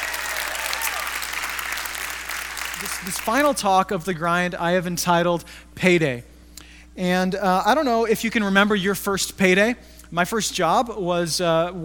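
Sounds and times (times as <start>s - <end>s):
audience clapping: 0.0s - 3.6s
speech: 2.8s - 6.3s, 7.0s - 11.8s.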